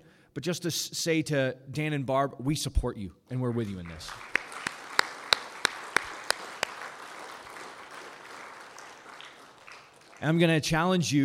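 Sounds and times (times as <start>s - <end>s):
speech: 0.4s - 4.3s, 10.2s - 11.2s
audience applauding: 3.7s - 10.7s.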